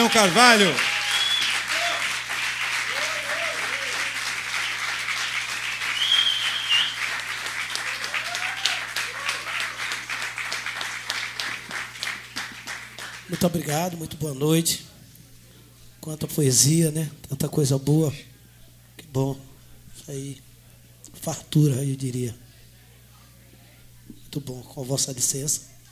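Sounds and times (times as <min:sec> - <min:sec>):
faint voices and whoops: 0:00.0 - 0:02.1, 0:02.9 - 0:04.2, 0:07.8 - 0:09.8
sustained applause from a sizable audience: 0:00.0 - 0:13.6
speech: 0:00.1 - 0:00.9, 0:13.4 - 0:14.9, 0:16.0 - 0:18.3, 0:19.1 - 0:20.5, 0:21.2 - 0:22.4, 0:24.4 - 0:25.7.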